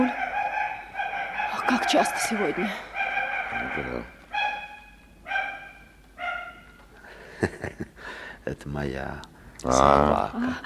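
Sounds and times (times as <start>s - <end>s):
dog barking: 0.0s - 6.8s
speech: 1.7s - 2.9s, 3.5s - 4.2s, 7.4s - 10.6s.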